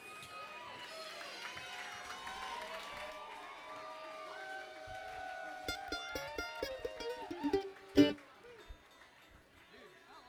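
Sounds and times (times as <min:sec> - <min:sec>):
crowd cheering and whooping to welcome a bluegrass six-string player: 0:00.0 - 0:08.2
crowd clapping: 0:00.0 - 0:09.9.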